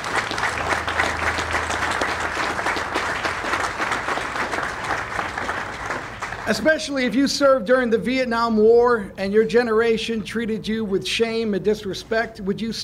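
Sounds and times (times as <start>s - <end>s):
audience applause: 0.0s - 6.9s
speech: 6.5s - 12.8s.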